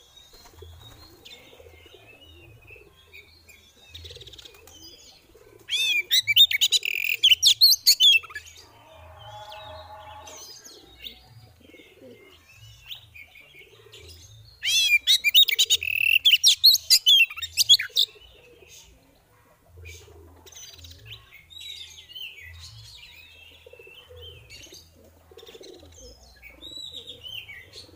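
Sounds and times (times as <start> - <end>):
female Oriental magpie-robin singing rapid whistled and chattering notes: 5.7 - 8.5, 14.6 - 18.1.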